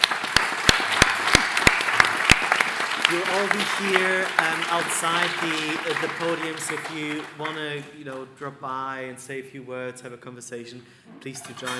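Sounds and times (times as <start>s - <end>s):
audience applause for the speakers at the close of a festival talk: 0.0s - 7.9s
speech: 3.1s - 11.7s.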